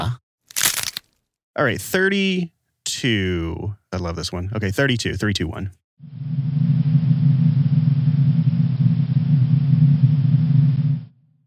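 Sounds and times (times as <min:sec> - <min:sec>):
speech: 0:01.6 - 0:06.4
white noise: 0:06.0 - 0:11.1.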